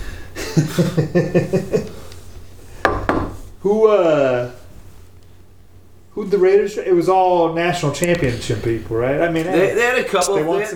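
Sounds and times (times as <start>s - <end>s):
laughter: 0.4s - 2.1s
speech: 0.6s - 2.0s, 3.6s - 4.6s, 6.2s - 10.7s
knocking on wood: 2.8s - 3.4s.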